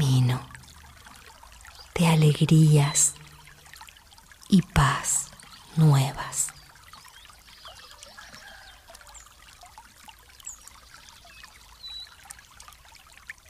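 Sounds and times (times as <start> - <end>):
water pouring and trickling: 0.0 - 13.4
speech: 2.0 - 3.2, 4.5 - 5.1, 5.8 - 6.5.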